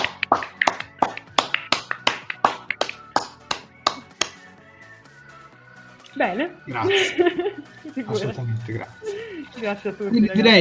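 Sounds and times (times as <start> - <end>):
applause: 0.0 - 4.3
speech: 6.2 - 10.5
laughter: 6.7 - 9.5.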